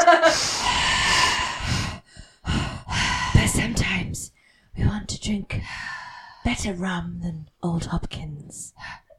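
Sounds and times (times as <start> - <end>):
breath rushing into a microphone: 0.3 - 4.8, 5.6 - 6.5
speech: 5.3 - 9.0.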